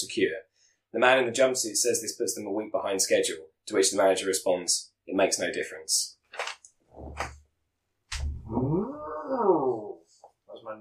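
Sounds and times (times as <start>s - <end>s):
speech: 0.2s - 6.4s
person mooing imitating a cow: 8.4s - 10.0s.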